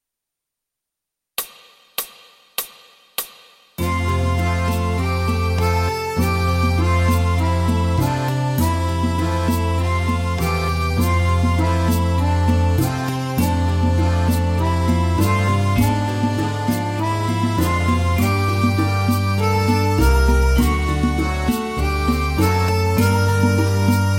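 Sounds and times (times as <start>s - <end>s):
accordion playing tutti: 3.8s - 24.1s.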